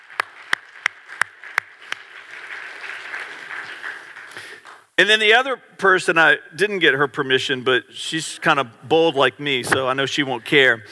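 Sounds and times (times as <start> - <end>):
audience clapping: 0.0 - 4.9
speech: 5.0 - 10.8.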